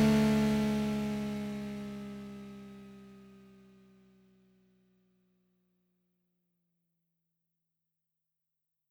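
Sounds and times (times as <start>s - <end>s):
Triumph Street Triple 675 motorcycle with Arrow exhaust: 0.0s - 3.2s.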